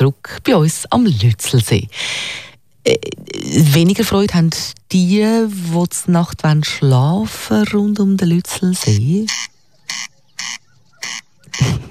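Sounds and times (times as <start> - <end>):
speech: 0.0 - 10.1, 11.0 - 11.8
corncrake calling at night: 7.0 - 11.8.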